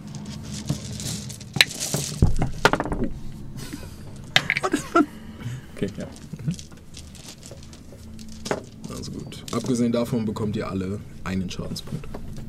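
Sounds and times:
dice rolled during a tabletop Call of Cthulhu game: 0.0 - 3.1, 6.0 - 9.8
laughter: 3.6 - 6.5
speech: 9.7 - 12.2.

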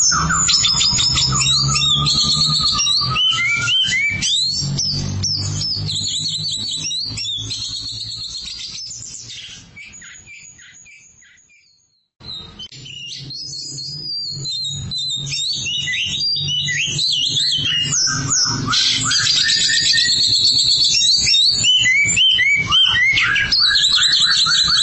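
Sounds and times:
Oriental magpie-robin song: 0.0 - 24.8.

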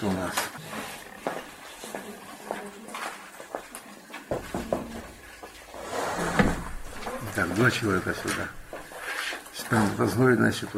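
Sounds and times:
speech: 0.0 - 0.6, 7.4 - 8.6, 9.7 - 10.7
bump and rustle: 4.2 - 9.4
chair shifted and set in place by men giving wooden knocks and scrapes: 5.8 - 7.2.

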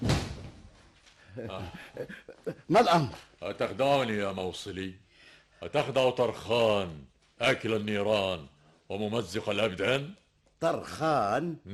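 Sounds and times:
door slamming shut: 0.0 - 0.6
laughter: 1.4 - 3.1
speech: 1.4 - 11.7.

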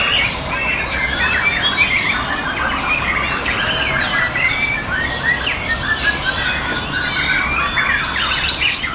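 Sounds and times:
birds singing in a dense chorus of chirps, squawks and warbles: 0.0 - 8.9.

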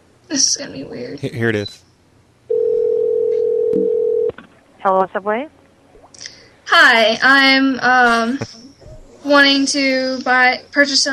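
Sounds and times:
speech: 0.3 - 1.9, 4.8 - 5.6, 6.7 - 8.6, 9.2 - 11.1
telephone dial tone: 2.5 - 4.3.

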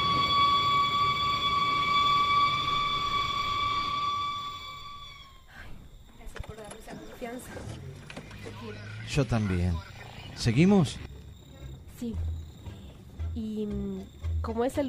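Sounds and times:
siren: 0.0 - 5.5
speech: 9.2 - 11.1, 12.0 - 12.3, 13.4 - 14.8.

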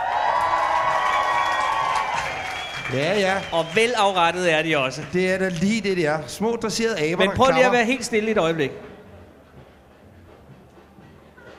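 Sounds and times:
large festival crowd at a Danish festival cheering and whooping: 0.0 - 4.4
speech: 2.9 - 8.9.

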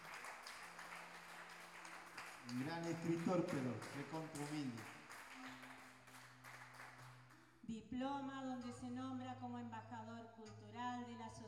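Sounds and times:
audience applause: 0.0 - 7.3
speech: 2.4 - 5.0, 7.7 - 11.4.

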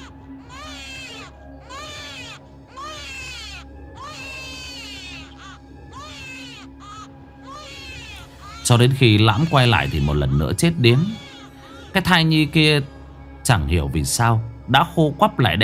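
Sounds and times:
cat yowling while eating flesh: 0.0 - 12.0
baby crying: 0.0 - 12.3
speech: 8.6 - 11.3, 12.0 - 15.6.

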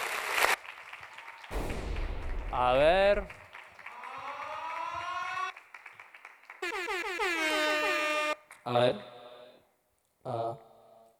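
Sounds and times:
audience applause: 0.0 - 8.6
speech: 2.5 - 3.4, 8.7 - 9.1, 10.2 - 10.6.

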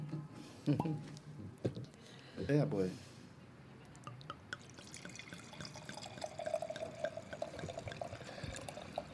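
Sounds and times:
speech: 0.7 - 1.2, 2.4 - 3.1
faint drips: 3.9 - 9.1
red wine from the western Duero being poured into glasses: 4.0 - 9.1.

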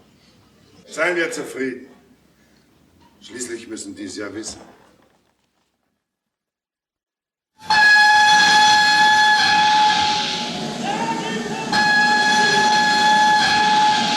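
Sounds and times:
speech: 1.0 - 1.9, 3.2 - 4.8
loud steady steam hiss at a railway station in Paris: 7.6 - 14.1
sustained high train whistle tones: 7.7 - 14.1.

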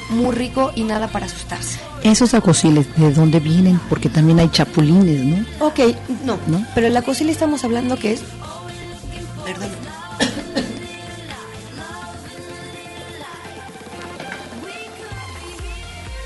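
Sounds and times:
steady tonal background: 0.0 - 16.2
speech: 0.1 - 8.5
person with a dry throat coughing: 10.2 - 11.0.

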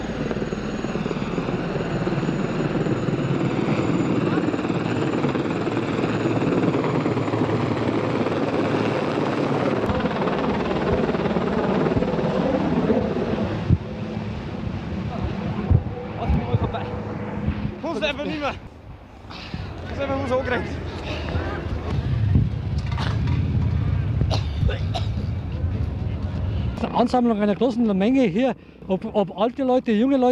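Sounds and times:
helicopter arriving overhead: 0.0 - 29.1
speech: 18.2 - 18.6, 27.0 - 30.2.

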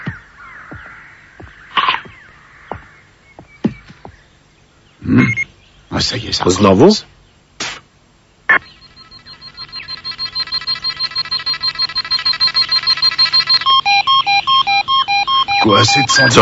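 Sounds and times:
sharp clicks: 1.7 - 2.2, 9.3 - 16.3
speech: 5.1 - 5.4, 6.0 - 7.1, 15.8 - 16.3
electronic alarm beeping: 5.2 - 5.5, 8.5 - 16.3.

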